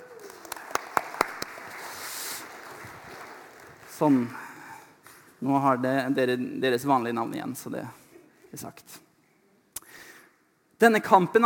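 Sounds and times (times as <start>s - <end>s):
sharp separate hand claps: 0.0s - 4.3s
faint applause: 0.0s - 4.4s
speech: 4.0s - 4.4s, 5.4s - 9.0s, 10.8s - 11.4s.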